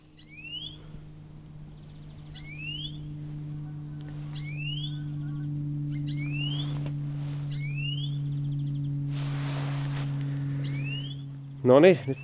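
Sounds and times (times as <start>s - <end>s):
low humming drone: 0.0s - 12.2s
bird whistling song: 0.2s - 0.9s, 1.8s - 3.1s, 4.3s - 6.8s, 7.5s - 9.0s, 10.6s - 11.3s.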